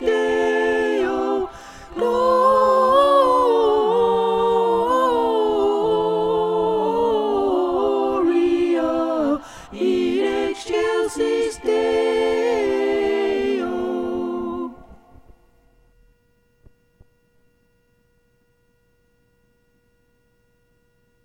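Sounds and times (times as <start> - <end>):
soprano singing: 0.0 - 14.8.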